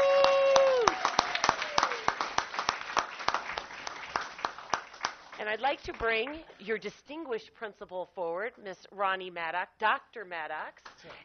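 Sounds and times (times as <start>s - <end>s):
audience applause: 0.0s - 5.5s
speech: 5.5s - 11.2s.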